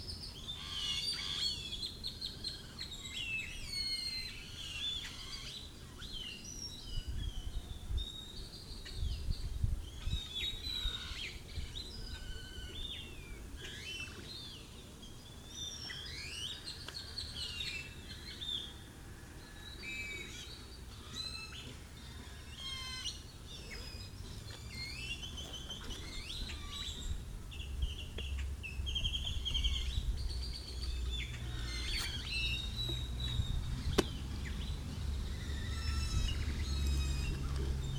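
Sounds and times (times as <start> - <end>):
birds chirping and trilling: 0.0 - 37.9.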